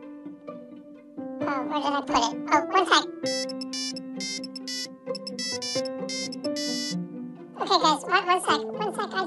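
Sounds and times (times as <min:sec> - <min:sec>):
speech: 0:01.5 - 0:03.6, 0:07.7 - 0:09.2
mobile phone ringtone electronic melody: 0:03.2 - 0:07.0.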